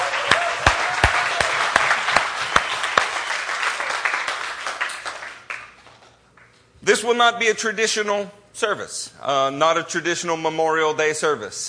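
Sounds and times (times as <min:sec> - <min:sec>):
audience applause for veterans: 0:00.0 - 0:06.1
speech: 0:06.9 - 0:11.6.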